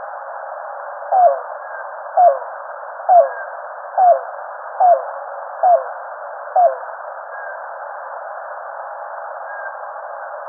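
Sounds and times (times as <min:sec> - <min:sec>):
yellow-billed cuckoo calling: 0:01.1 - 0:01.4, 0:02.2 - 0:02.4, 0:04.0 - 0:04.2, 0:05.6 - 0:05.9, 0:06.6 - 0:06.8.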